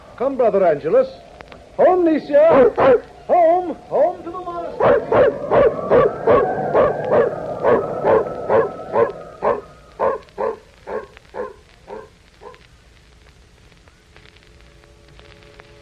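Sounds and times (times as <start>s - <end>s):
speech: 0.2s - 6.4s
dog barking: 2.5s - 3.0s, 4.8s - 12.6s.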